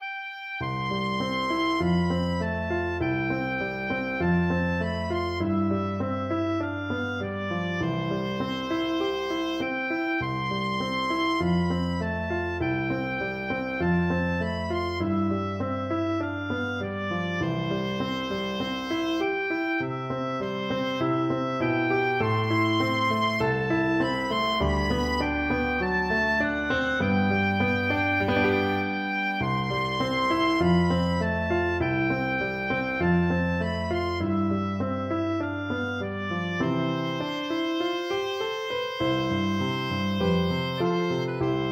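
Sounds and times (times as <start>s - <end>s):
oboe: 0.0s - 41.7s.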